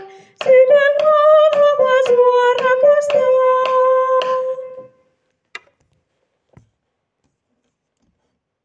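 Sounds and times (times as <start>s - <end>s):
soprano singing: 0.0s - 5.0s.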